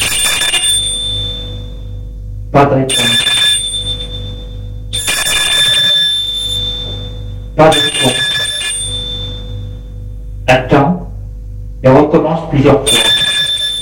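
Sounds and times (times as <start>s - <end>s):
doorbell ringing: 0.0s - 1.8s, 2.9s - 9.6s, 12.9s - 13.8s
steady low hum: 0.0s - 13.8s
speech: 2.6s - 3.3s, 7.6s - 8.0s, 12.5s - 13.1s.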